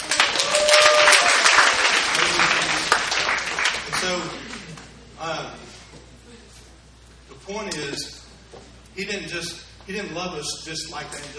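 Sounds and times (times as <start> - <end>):
audience clapping for a birthday: 0.0 - 4.9
speech: 9.0 - 11.3.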